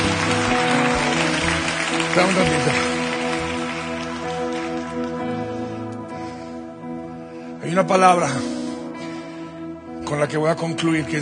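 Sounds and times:
audience applause: 0.0s - 5.6s
speech: 2.2s - 3.0s, 7.7s - 8.6s, 10.1s - 11.2s.

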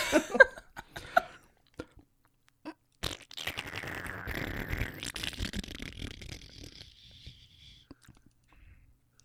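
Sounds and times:
short lip pops: 1.7s - 8.6s
person imitating a fart with mouth: 3.0s - 7.7s.

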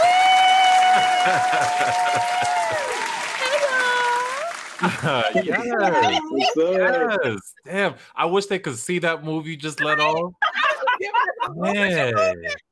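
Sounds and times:
round of applause: 0.0s - 6.1s
whoops and cheering voices: 0.0s - 6.4s
laughter: 0.8s - 3.0s, 4.8s - 7.4s, 10.0s - 12.7s
speech: 1.0s - 3.0s, 4.8s - 10.4s, 11.0s - 12.7s.

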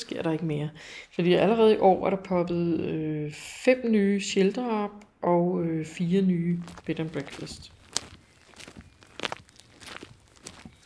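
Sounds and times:
speech: 0.2s - 7.8s
footsteps setting off on walking route: 6.5s - 10.8s.

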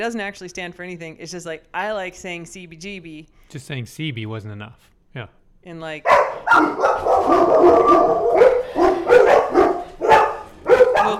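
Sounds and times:
speech: 0.0s - 8.6s
dogs barking and howling: 6.1s - 11.1s.

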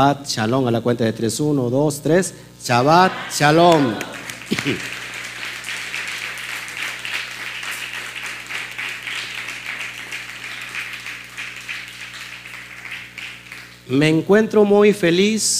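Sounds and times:
speech: 0.0s - 5.0s, 13.9s - 15.5s
laughter: 2.8s - 5.0s
audience applause: 2.9s - 13.8s.

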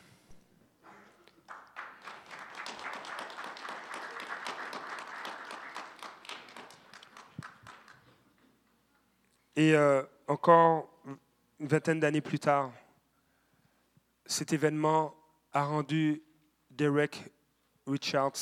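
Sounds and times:
crowd applause: 1.2s - 8.2s
speech: 9.6s - 12.8s, 14.3s - 16.2s, 16.8s - 18.3s.

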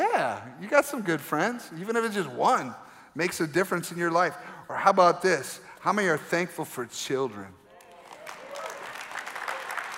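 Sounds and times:
speech: 0.4s - 7.6s
audience clapping: 7.7s - 9.9s.

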